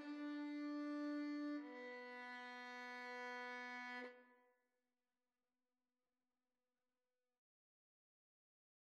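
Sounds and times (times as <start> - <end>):
violin duet: 0.0 - 4.1.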